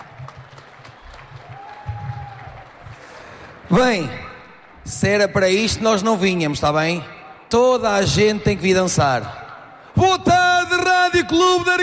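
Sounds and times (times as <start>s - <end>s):
audience applause: 0.0s - 3.8s
speech: 3.7s - 4.3s, 4.9s - 9.4s, 10.0s - 11.8s.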